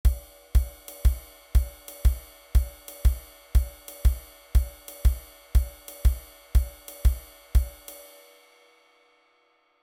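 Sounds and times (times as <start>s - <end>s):
MIDI music: 0.1s - 7.9s.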